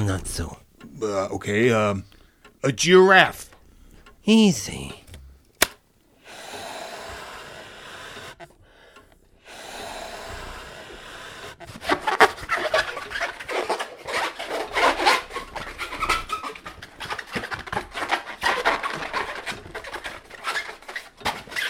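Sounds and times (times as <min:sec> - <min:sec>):
speech: 0:00.1 - 0:03.5, 0:04.2 - 0:05.0
rubber balloon squeaking as it's twisted into animal: 0:11.6 - 0:21.6.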